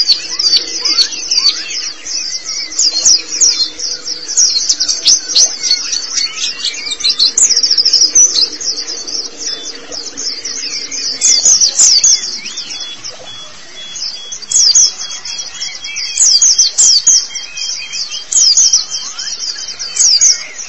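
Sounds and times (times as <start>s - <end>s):
faint low hum: 0.0s - 16.3s
white-eye singing: 0.0s - 20.6s.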